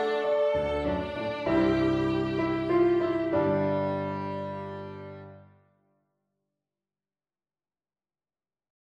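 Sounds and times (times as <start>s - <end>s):
violin: 0.0s - 5.5s
piano: 0.0s - 5.6s.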